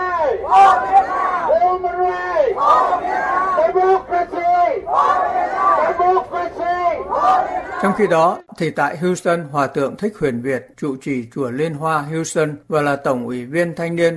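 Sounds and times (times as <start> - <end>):
crowd of protesters chanting slogans: 0.0 - 8.2
speech: 0.4 - 14.1.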